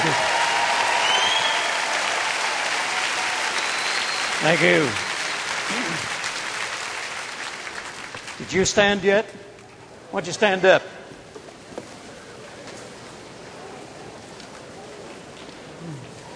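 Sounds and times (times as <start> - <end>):
audience applause: 0.0 - 8.6
speech: 4.4 - 5.1, 8.4 - 9.5, 10.1 - 11.0.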